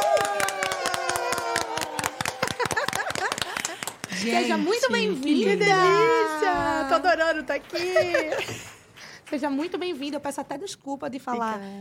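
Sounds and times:
applause: 0.0s - 4.5s
laughter: 1.0s - 4.8s, 5.8s - 8.8s
speech: 4.2s - 11.7s.

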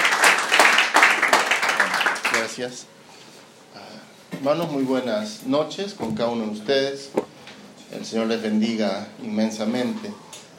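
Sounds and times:
audience applause: 0.0s - 2.6s
speech: 2.4s - 3.0s, 3.7s - 7.3s, 7.9s - 10.5s.

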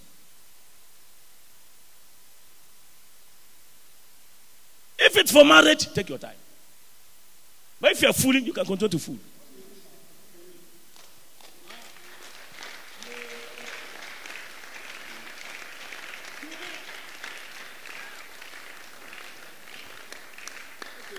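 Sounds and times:
speech: 5.2s - 6.4s, 7.8s - 9.3s
audience clapping: 10.9s - 21.1s.

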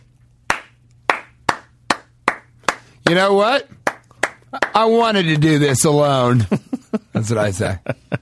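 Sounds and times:
one person slow clapping: 0.5s - 3.2s, 3.8s - 4.8s
speech: 3.1s - 3.8s, 4.5s - 8.2s.

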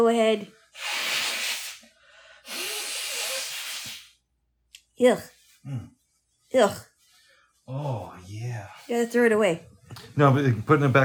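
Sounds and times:
speech: 0.0s - 1.0s, 5.0s - 6.9s, 7.7s - 11.0s
person blowing nose into a tissue: 0.8s - 4.2s.

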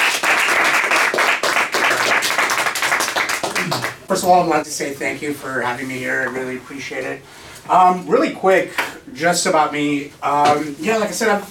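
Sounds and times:
audience applause: 0.0s - 4.0s
speech: 4.1s - 11.4s.

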